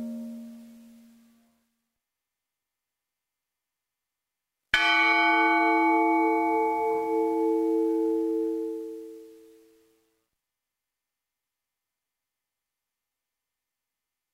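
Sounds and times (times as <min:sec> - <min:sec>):
bells ringing: 0:04.8 - 0:08.9.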